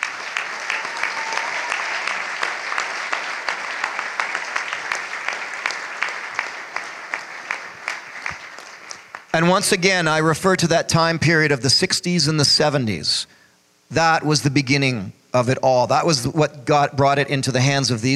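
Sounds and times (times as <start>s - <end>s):
audience applause: 0.0s - 9.8s
speech: 9.4s - 18.1s.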